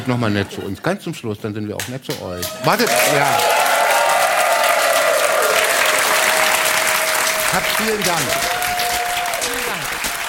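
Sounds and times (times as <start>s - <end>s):
speech: 0.0s - 3.7s, 7.6s - 8.8s
large audience applause: 2.4s - 10.2s.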